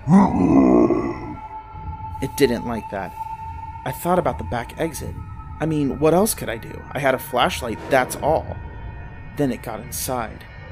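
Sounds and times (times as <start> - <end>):
person imitating a creature howling: 0.0 - 1.4
speech: 0.1 - 0.6, 2.2 - 8.6, 9.4 - 10.5.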